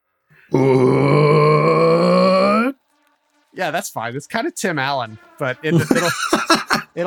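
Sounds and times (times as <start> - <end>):
speech: 0.5 - 1.1, 3.6 - 7.0
person imitating monster roar with throaty growl: 0.5 - 2.8, 5.7 - 6.8
laughter: 5.5 - 7.0.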